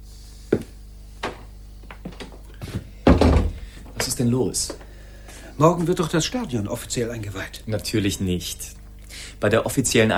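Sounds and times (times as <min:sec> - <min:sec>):
soft knocks and shuffles: 0:00.5 - 0:06.1
door shutting with a solid thud: 0:03.0 - 0:04.8
speech: 0:04.2 - 0:04.8, 0:05.6 - 0:10.1.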